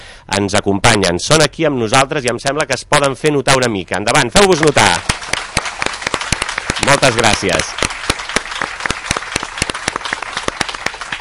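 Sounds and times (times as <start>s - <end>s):
speech: 0.3s - 5.4s, 7.0s - 7.9s
audience applause: 4.4s - 11.1s.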